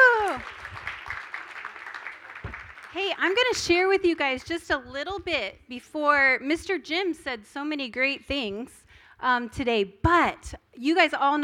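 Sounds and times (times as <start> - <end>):
audience clapping for children: 0.0 - 3.4
speech: 3.0 - 11.4.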